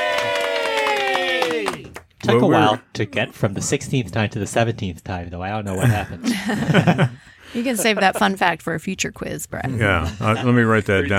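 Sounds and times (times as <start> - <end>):
crowd cheering: 0.0 - 2.5
speech: 2.3 - 11.1
laughter: 5.7 - 8.5.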